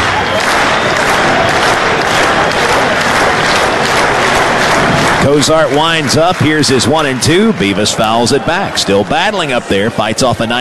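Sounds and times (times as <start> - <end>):
fans standing and clapping: 0.0 - 10.5
speech: 5.2 - 10.5.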